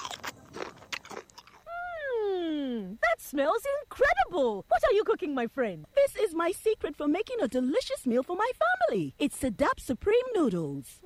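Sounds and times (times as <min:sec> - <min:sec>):
crunchy Nabisco snack being bitten and chewed: 0:00.0 - 0:01.9
speech: 0:03.3 - 0:11.0.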